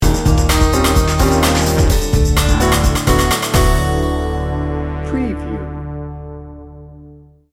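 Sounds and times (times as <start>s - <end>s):
busy beats sting bumper: 0.0s - 5.8s.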